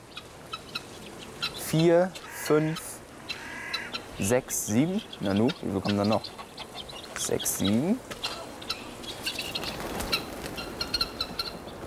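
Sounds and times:
guinea fowl calling: 0:00.0 - 0:11.8
speech: 0:01.7 - 0:02.9, 0:04.2 - 0:06.4, 0:07.2 - 0:08.1
guinea fowl wings flapping: 0:08.1 - 0:11.8.

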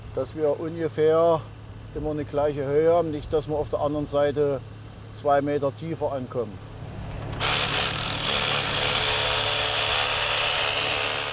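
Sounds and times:
speech: 0:00.2 - 0:06.7
power drill drilling anchor holes: 0:07.2 - 0:11.3.

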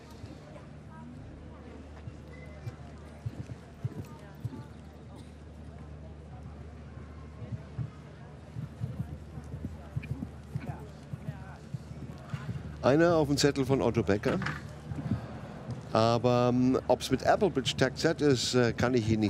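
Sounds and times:
crowd murmur: 0:00.0 - 0:19.2
horse hooves during show jumping round: 0:02.2 - 0:04.9, 0:07.5 - 0:13.8
speech: 0:12.8 - 0:14.7, 0:15.9 - 0:19.2.

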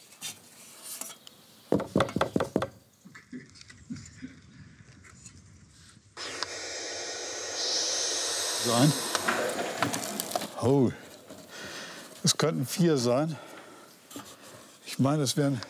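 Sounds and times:
knocking on a wooden nest box: 0:01.7 - 0:02.8
rasping hiss: 0:06.2 - 0:14.9
speech: 0:08.7 - 0:09.0, 0:10.6 - 0:11.0, 0:12.2 - 0:13.5, 0:15.0 - 0:15.6.

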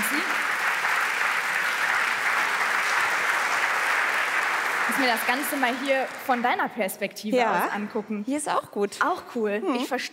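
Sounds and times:
audience applause: 0:00.0 - 0:06.9
speech: 0:05.0 - 0:10.1.

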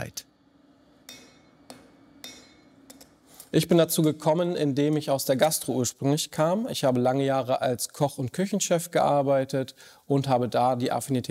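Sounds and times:
low steady hum: 0:00.0 - 0:08.3
knife smith hammering steel in his workshop in Hannover-Döhren: 0:01.0 - 0:03.1
speech: 0:03.5 - 0:11.2.

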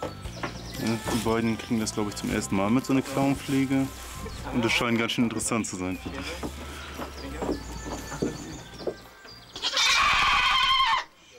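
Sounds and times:
speech: 0:00.8 - 0:06.9
goats bleating loudly in protest: 0:09.6 - 0:11.1.

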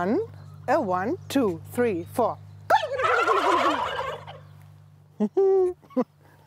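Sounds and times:
speech: 0:00.0 - 0:02.4, 0:05.2 - 0:06.2
steady low hum: 0:00.0 - 0:06.4
male turkeys gobbling in chorus: 0:02.7 - 0:04.6.

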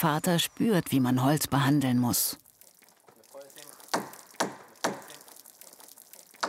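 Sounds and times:
speech: 0:00.0 - 0:02.4
water running over a cedar plank: 0:01.6 - 0:06.4.

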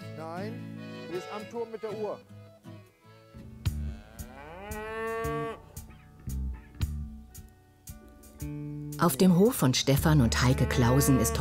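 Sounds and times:
speech: 0:00.2 - 0:02.4, 0:08.4 - 0:11.3
herd of English Longhorn cattle mooing: 0:03.8 - 0:05.8, 0:10.0 - 0:11.3.

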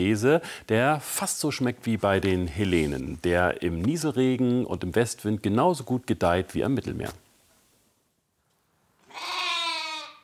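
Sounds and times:
speech: 0:00.0 - 0:07.2
lambs bleating: 0:09.0 - 0:10.2.

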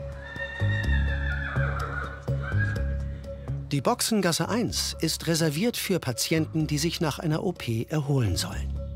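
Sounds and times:
horse whinnying: 0:00.2 - 0:03.1
speech: 0:03.7 - 0:08.8.

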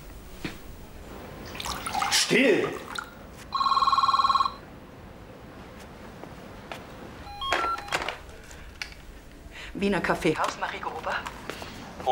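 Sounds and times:
speech: 0:02.3 - 0:02.8, 0:09.8 - 0:11.4
telephone ringing with an incoming call: 0:03.5 - 0:04.7, 0:07.2 - 0:08.2
short beeps and clicks: 0:07.3 - 0:08.0.

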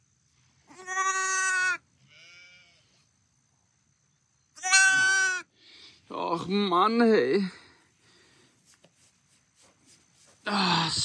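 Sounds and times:
injured lamb that lost an eye bleating: 0:00.7 - 0:02.8, 0:04.6 - 0:05.5
speech: 0:06.4 - 0:07.6.

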